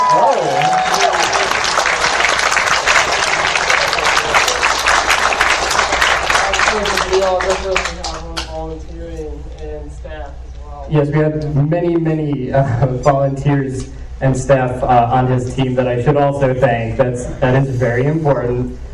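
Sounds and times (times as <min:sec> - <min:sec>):
audience applause: 0:00.0 - 0:08.6
speech: 0:10.9 - 0:18.9.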